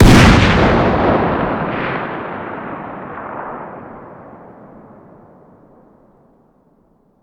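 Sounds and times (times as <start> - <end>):
distant .50 BMG rifle fire outdoors: 0.0 - 5.2.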